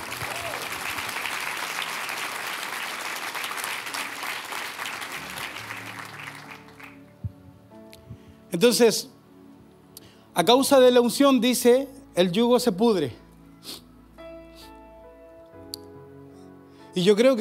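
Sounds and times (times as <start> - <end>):
audience applauding: 0.0 - 7.2
speech: 8.5 - 9.2, 10.4 - 13.8, 17.0 - 17.4.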